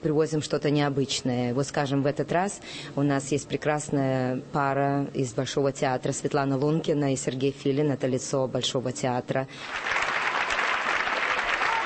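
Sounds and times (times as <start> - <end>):
speech: 0.0 - 10.1
large audience applauding Bolshoi ballet dancers at Lincoln Center in New York: 9.6 - 11.8.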